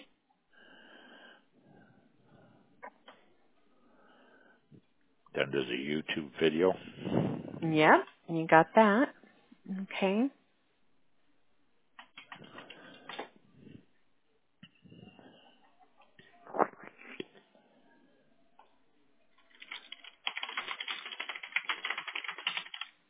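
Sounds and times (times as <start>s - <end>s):
speech: 5.4s - 10.4s
fast typing on a computer keyboard: 12.0s - 13.0s, 19.4s - 23.0s.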